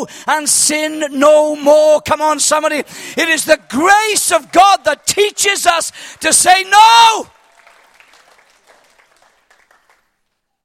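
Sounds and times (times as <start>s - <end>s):
speech: 0.0s - 7.4s
audience hand clapping: 3.8s - 6.7s, 7.3s - 10.6s.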